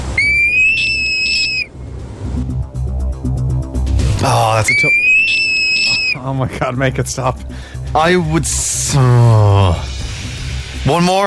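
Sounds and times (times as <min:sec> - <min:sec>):
frog call: 0:00.0 - 0:01.7, 0:04.7 - 0:06.2
low rumbling background: 0:00.0 - 0:11.2
speech: 0:04.2 - 0:05.4, 0:06.2 - 0:09.9, 0:10.9 - 0:11.2.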